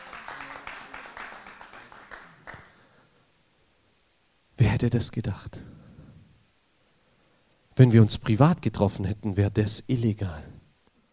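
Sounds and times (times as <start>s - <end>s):
audience applause: 0.0s - 2.8s
speech: 4.6s - 5.8s, 7.8s - 10.5s.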